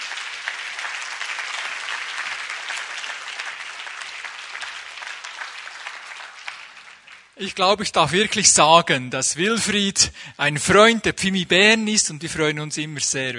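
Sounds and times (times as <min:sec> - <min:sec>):
audience applause: 0:00.0 - 0:07.4
speech: 0:07.4 - 0:13.3.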